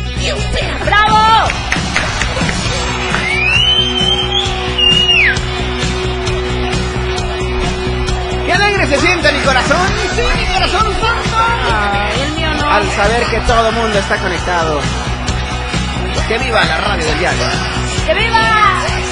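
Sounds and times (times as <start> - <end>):
studio audience applause: 0.7 - 17.8
whistles: 3.1 - 5.6
speech: 12.7 - 15.0, 16.2 - 19.1.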